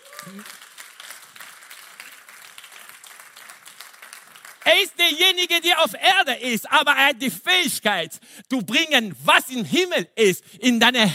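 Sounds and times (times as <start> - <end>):
audience applause: 0.0 - 4.9
speech: 0.2 - 0.6, 4.7 - 11.1.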